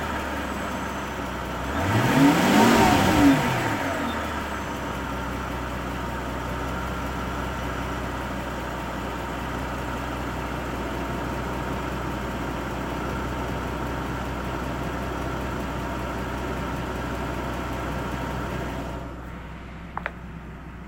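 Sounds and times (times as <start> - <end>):
W221 S-Class M275 V12 engine ticking noise: 0.0 - 20.8.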